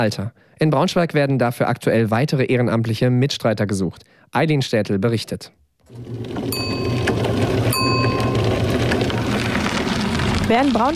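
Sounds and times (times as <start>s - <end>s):
speech: 0.0s - 6.8s, 10.5s - 10.9s
cycle rickshaw soft whirring: 5.9s - 10.9s
cycle rickshaw bell ringing: 6.4s - 9.0s.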